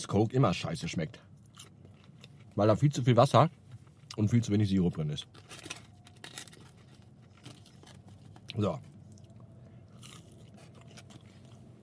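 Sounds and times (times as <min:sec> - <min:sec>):
speech: 0:00.0 - 0:01.7, 0:02.6 - 0:03.6, 0:04.2 - 0:05.7, 0:08.6 - 0:08.9
chewing food: 0:01.4 - 0:02.6, 0:05.2 - 0:11.8
steady low hum: 0:05.4 - 0:11.8.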